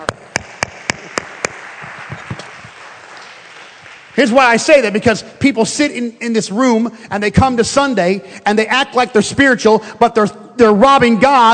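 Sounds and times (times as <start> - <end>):
group clapping in unison: 0.0 - 4.6
speech: 4.2 - 11.5.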